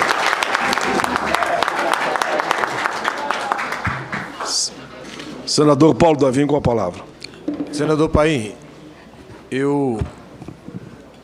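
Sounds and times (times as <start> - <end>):
audience applause: 0.0 - 4.7
speech: 5.6 - 7.1, 7.8 - 8.6, 9.5 - 10.2.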